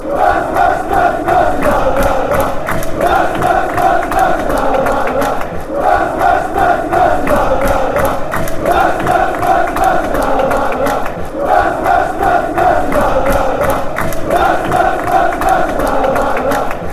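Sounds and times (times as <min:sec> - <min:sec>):
crowd chanting: 0:00.0 - 0:16.9.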